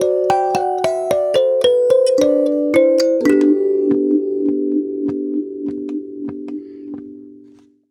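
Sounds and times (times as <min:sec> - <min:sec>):
African kalimba: 0:00.0 - 0:04.7.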